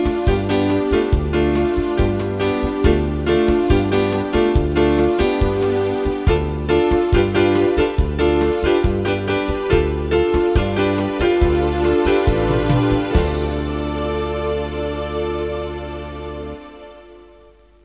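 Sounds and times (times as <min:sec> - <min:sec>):
violin: 0:00.0 - 0:17.5.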